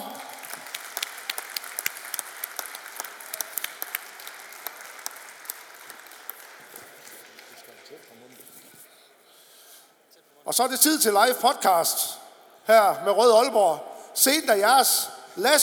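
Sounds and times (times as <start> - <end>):
audience applause: 0.0 - 8.5
speech: 10.5 - 15.6.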